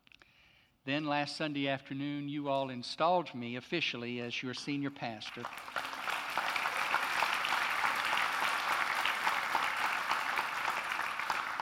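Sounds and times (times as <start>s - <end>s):
speech: 0.8s - 6.5s
audience clapping: 4.6s - 11.6s.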